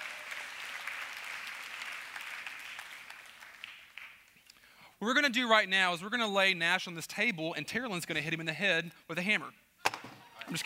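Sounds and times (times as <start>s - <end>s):
audience applause: 0.0s - 4.2s
speech: 5.0s - 9.6s, 10.5s - 10.6s.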